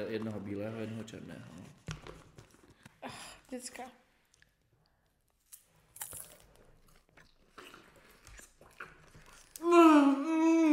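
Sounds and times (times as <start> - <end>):
speech: 0.1 - 1.9, 3.0 - 4.0
crunchy snack being bitten and chewed: 6.0 - 9.6
person saying mmm with enjoyment: 9.6 - 10.7.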